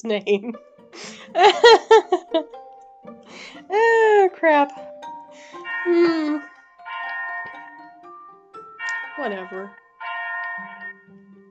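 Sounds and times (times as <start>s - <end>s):
speech: 0.0s - 4.9s, 5.8s - 6.5s, 9.2s - 9.8s
laughter: 1.2s - 2.4s
clock chiming the hour: 3.7s - 11.1s
lower chime hum: 4.9s - 11.0s.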